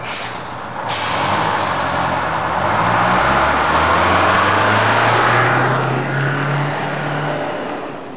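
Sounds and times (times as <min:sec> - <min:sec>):
car: 0:00.0 - 0:08.1.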